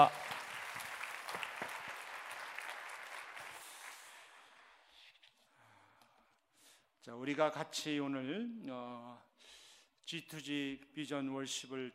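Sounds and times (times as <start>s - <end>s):
audience applause: 0.0s - 4.8s
speech: 7.1s - 11.9s.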